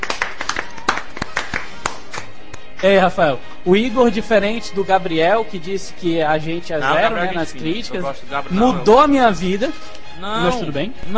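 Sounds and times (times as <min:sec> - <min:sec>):
hand clapping: 0:00.0 - 0:02.9
speech: 0:02.8 - 0:11.1.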